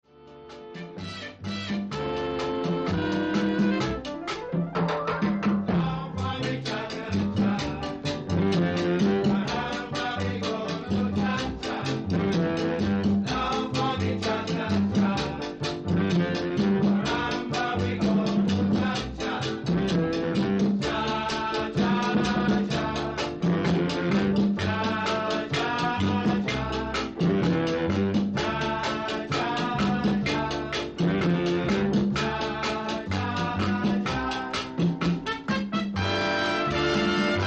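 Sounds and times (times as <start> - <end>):
African jazz cha cha music: 0.0 - 37.4.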